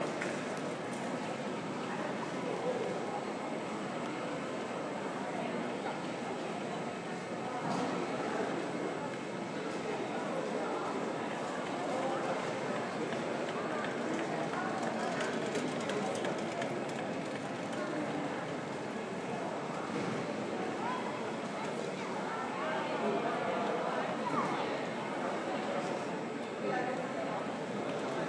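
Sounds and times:
Manchester Airport Terminal 2 ambience: 0.0 - 28.2.

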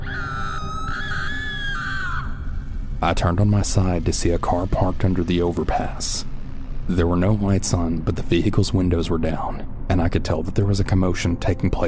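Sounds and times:
person screaming: 0.0 - 2.7
low rumbling background: 0.0 - 11.8
speech: 3.0 - 6.3, 6.9 - 11.8.

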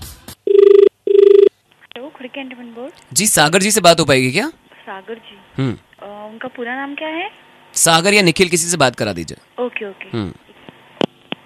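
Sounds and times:
telephone call ringing: 0.5 - 1.5
speech: 2.2 - 10.4.

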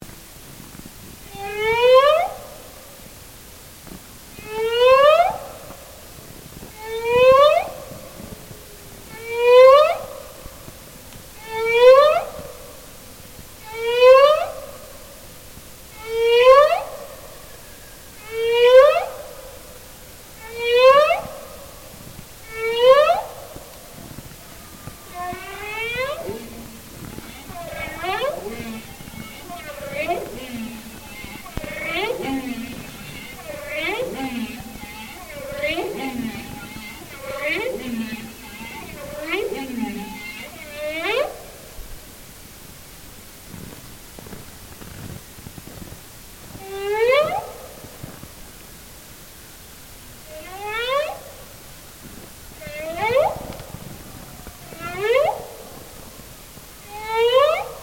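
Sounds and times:
bowhead whale singing near Barrow Alaska: 1.3 - 2.8, 4.3 - 12.9, 13.6 - 15.2, 15.9 - 41.8, 46.6 - 47.9, 50.2 - 51.6, 52.5 - 57.8.

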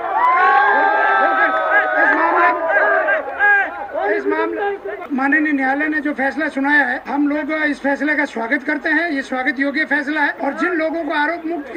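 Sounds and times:
Bishnoi community crowd cheering and shouting over a court verdict: 0.0 - 5.1
speech: 4.8 - 11.7.

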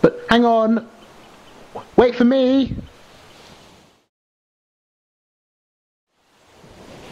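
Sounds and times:
speech: 0.0 - 1.0, 2.0 - 2.8
sea waves splashing as people wade out at the beach: 1.0 - 4.0, 6.1 - 7.1.

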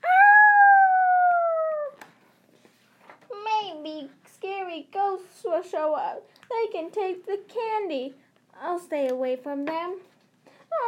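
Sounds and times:
werewolf howling at the moon: 0.0 - 2.0
speech: 5.6 - 10.1.

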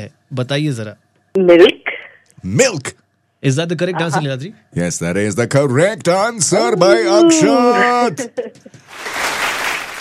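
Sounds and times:
speech: 0.0 - 1.8, 2.4 - 9.4
audience applause following a correct quiz answer: 8.8 - 9.9.

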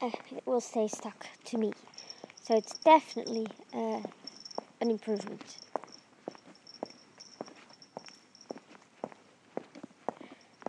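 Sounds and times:
speech: 0.0 - 4.2, 4.8 - 5.6
footsteps on street pavement: 2.2 - 10.6.

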